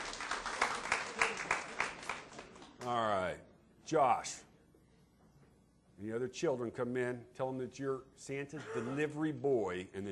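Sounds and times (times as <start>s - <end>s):
small round of applause for a child at a Christmas gathering: 0.0s - 3.2s
speech: 2.8s - 4.4s, 6.0s - 10.1s.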